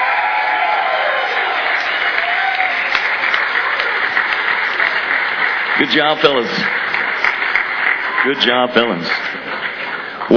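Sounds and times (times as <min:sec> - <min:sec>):
crowd applause: 0:00.0 - 0:10.3
speech: 0:05.8 - 0:06.8, 0:08.2 - 0:09.4.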